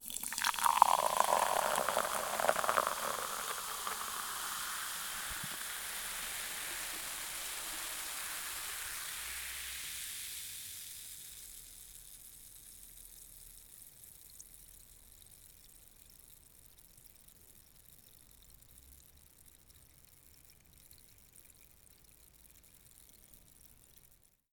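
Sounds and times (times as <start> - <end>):
fizzy drink pouring into a glass: 0.0 - 11.6.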